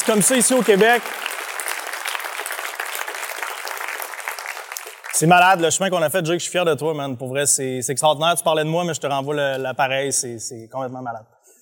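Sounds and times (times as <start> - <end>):
audience applause: 0.0 - 5.8
speech: 0.1 - 1.4, 5.2 - 11.4.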